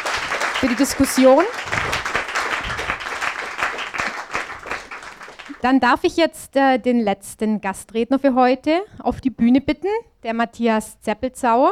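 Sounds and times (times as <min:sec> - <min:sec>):
audience applause: 0:00.0 - 0:05.6
speech: 0:00.6 - 0:01.9, 0:05.6 - 0:11.7.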